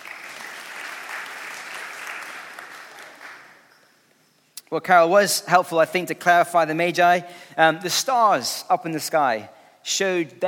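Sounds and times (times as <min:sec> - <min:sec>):
audience applause: 0:00.0 - 0:03.6
speech: 0:04.7 - 0:10.4.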